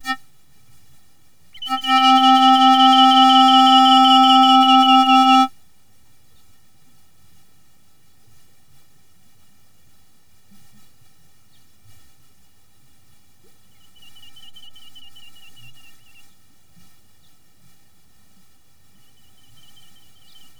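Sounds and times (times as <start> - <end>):
nature ambience: 0.0 - 5.5, 12.9 - 20.5.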